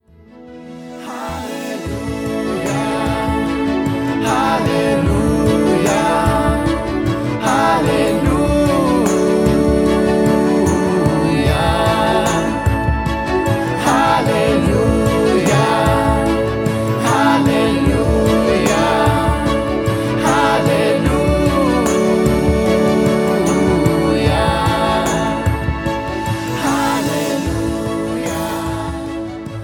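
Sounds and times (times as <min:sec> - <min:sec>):
choral hymn singing: 0:00.7 - 0:29.6.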